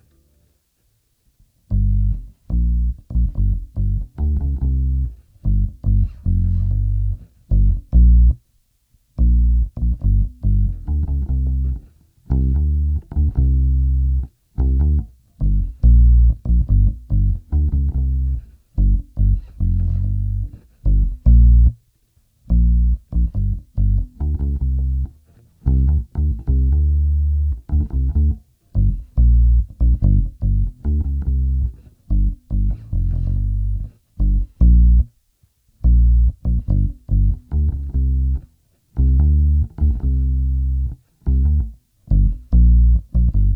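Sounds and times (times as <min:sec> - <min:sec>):
bass: 0:00.0 - 0:00.5, 0:01.4 - 0:43.5.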